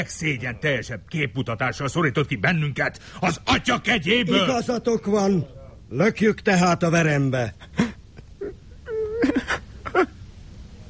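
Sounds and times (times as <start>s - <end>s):
speech: 0.0s - 7.8s
person wailing and whimpering: 7.8s - 10.2s.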